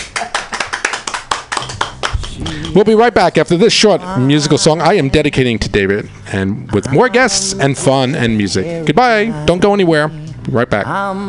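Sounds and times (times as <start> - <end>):
round of applause: 0.0 - 2.9
speech: 2.8 - 11.2.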